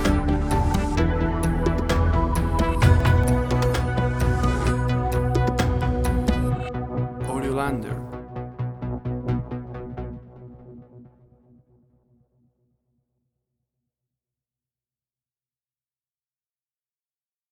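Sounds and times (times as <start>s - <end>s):
atmospheric synth tension: 0.0s - 11.8s.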